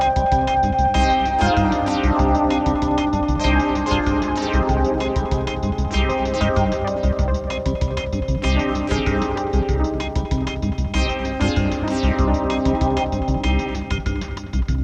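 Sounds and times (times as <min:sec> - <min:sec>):
Amharic soul music on a synthesizer: 0:00.0 - 0:14.8.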